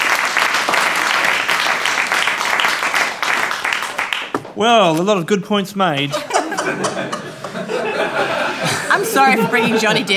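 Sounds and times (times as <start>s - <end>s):
crowd applauding: 0.0s - 4.4s
speech: 4.6s - 7.2s, 9.0s - 10.1s
laughter: 5.9s - 10.1s.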